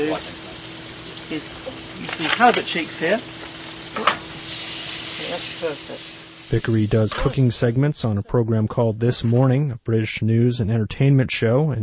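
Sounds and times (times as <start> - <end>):
speech: 0.0 - 0.4, 1.3 - 4.2, 5.2 - 11.8
unsalted butter sizzling in a hot pan: 0.0 - 6.9.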